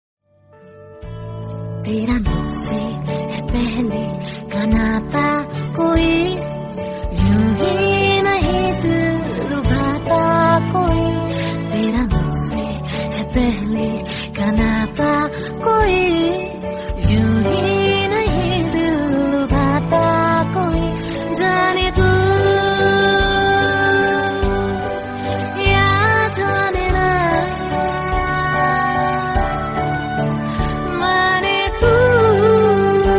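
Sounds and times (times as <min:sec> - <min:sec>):
Hindi love song: 0:00.7 - 0:33.1.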